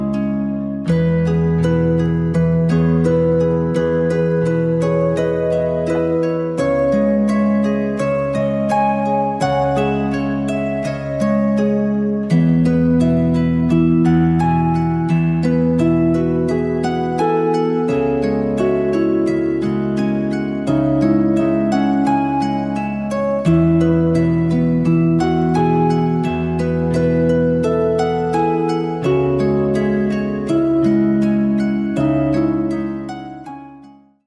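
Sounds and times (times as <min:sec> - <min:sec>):
dreamy harp: 0:00.0 - 0:34.2.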